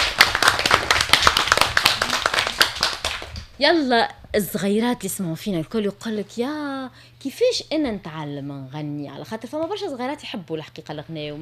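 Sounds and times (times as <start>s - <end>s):
small group clapping for young singers: 0.0s - 3.6s
speech: 3.6s - 11.4s.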